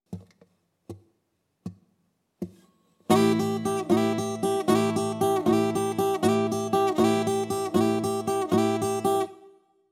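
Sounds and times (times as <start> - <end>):
blues rock guitar in open tunings: 3.1 - 9.3.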